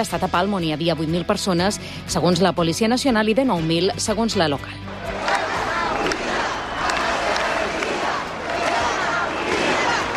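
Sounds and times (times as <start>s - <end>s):
speech: 0.0s - 5.2s
large rally crowd shouting and chanting: 4.8s - 10.1s.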